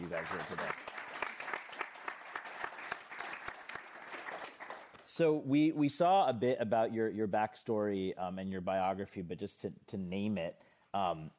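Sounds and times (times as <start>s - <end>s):
audience applause: 0.0s - 4.9s
speech: 0.1s - 0.8s, 5.2s - 11.3s.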